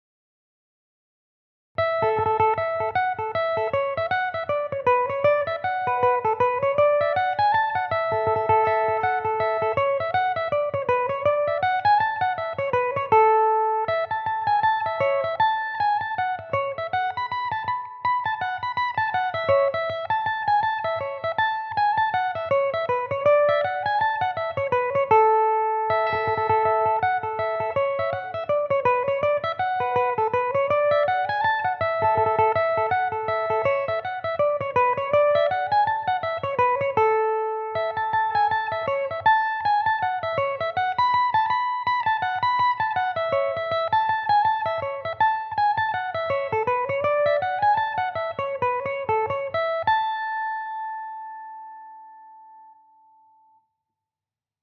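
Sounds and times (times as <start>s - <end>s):
Irish mandolin in A major: 1.8s - 53.5s.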